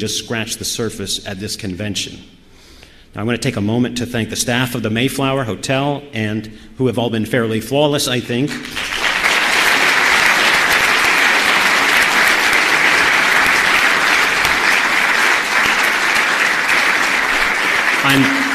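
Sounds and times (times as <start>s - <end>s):
speech: 0.0s - 2.4s, 3.1s - 9.0s, 18.1s - 18.4s
audience applause: 8.5s - 18.5s.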